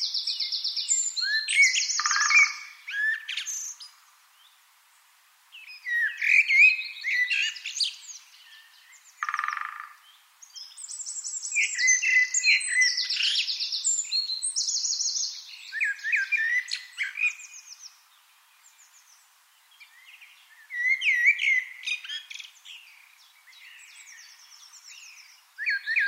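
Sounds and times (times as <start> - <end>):
Eurasian wren song: 0.0 - 4.6, 5.5 - 26.0.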